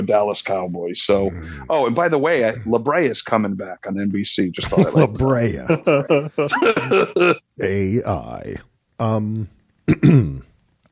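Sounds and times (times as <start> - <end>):
speech: 0.0 - 10.5
laughter: 4.6 - 7.4
person clearing throat: 9.9 - 10.5.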